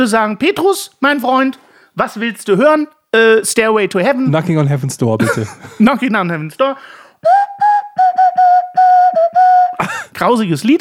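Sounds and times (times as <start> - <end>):
speech: 0.0 - 7.4, 9.8 - 10.7
laughter: 5.2 - 5.9
puff of breath: 6.8 - 7.2
nose flute playing: 7.2 - 9.8.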